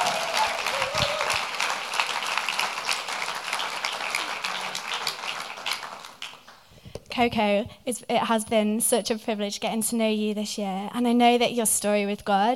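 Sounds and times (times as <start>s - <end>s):
audience applause: 0.0s - 6.6s
crowd cheering: 0.0s - 6.6s
speech: 7.2s - 12.5s.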